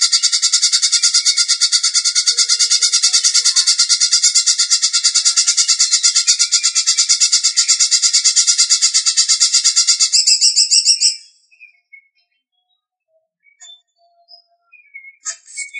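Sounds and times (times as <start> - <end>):
leafbird song of rattling chatter: 0.0 - 15.7.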